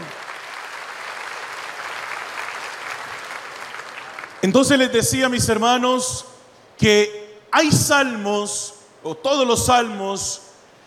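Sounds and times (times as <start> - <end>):
audience applause: 0.0 - 4.4
speech: 4.4 - 10.4.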